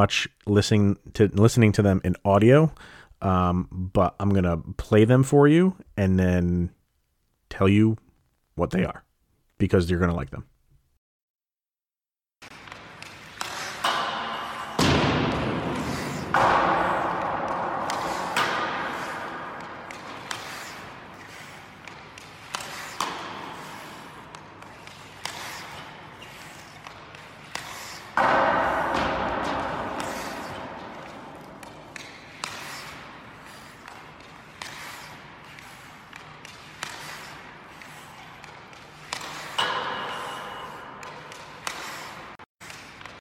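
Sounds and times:
speech: 0.0s - 6.8s, 7.5s - 8.0s, 8.6s - 9.0s, 9.6s - 10.5s
hockey stick slapping puck on shots: 12.4s - 43.1s
puck thuds and ringing pings: 13.4s - 20.9s, 28.2s - 33.0s, 39.2s - 41.6s.

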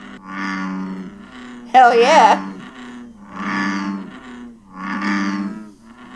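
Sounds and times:
bullfrog call: 0.0s - 6.1s
speech: 1.7s - 2.6s.

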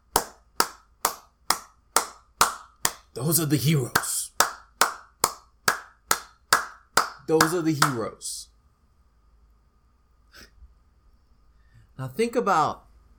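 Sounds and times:
people clapping: 0.1s - 8.0s
speech: 3.2s - 4.2s, 7.3s - 8.5s, 12.0s - 12.9s.

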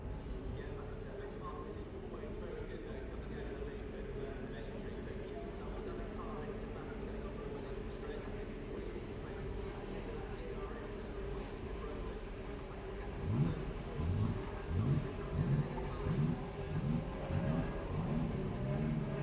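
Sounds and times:
constant murmur: 0.0s - 19.2s
Formula 3 race cars roaring at Silverstone: 11.4s - 19.2s.

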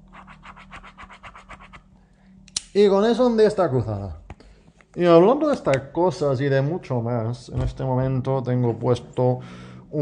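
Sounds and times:
blue ink ballpoint pen scratching across paper: 0.0s - 1.8s
speech: 2.8s - 4.2s, 5.0s - 10.0s.

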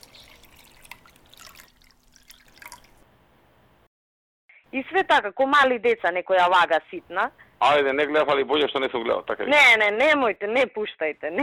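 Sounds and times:
drink pouring into a glass: 0.0s - 3.0s
speech: 4.7s - 11.4s.

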